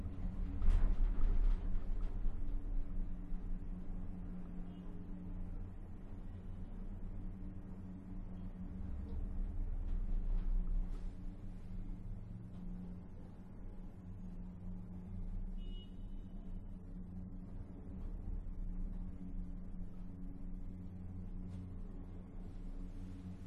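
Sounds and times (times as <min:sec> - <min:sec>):
cable car ride: 0:00.0 - 0:23.4.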